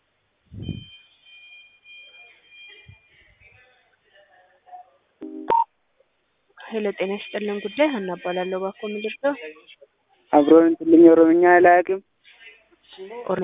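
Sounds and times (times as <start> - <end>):
thin steady high telephone tone as a call is transferred: 5.2 - 5.6
speech: 6.7 - 12.1, 13.0 - 13.4.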